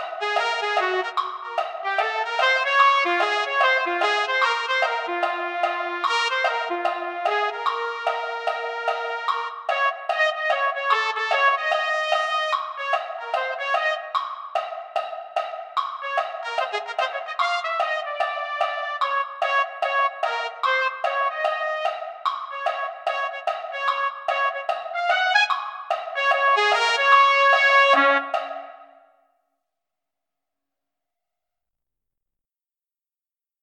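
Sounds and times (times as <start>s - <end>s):
trumpet playing a Christmas tune: 0.0s - 14.2s, 16.0s - 28.6s.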